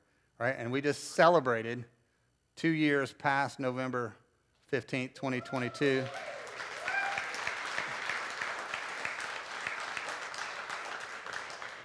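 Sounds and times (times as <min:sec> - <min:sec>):
speech: 0:00.4 - 0:02.0, 0:02.6 - 0:06.3
crowd applause: 0:05.5 - 0:11.8.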